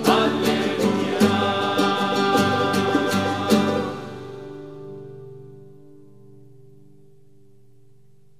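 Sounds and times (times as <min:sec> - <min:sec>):
sung gospel acclamation: 0:00.0 - 0:04.7.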